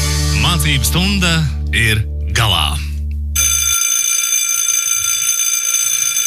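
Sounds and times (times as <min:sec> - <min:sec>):
speech: 0:00.6 - 0:02.9
school bell ringing: 0:03.4 - 0:06.2.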